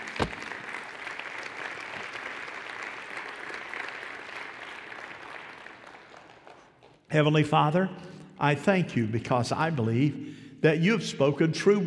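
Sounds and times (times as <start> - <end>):
audience clapping: 0.0 - 7.1
speech: 7.1 - 11.8.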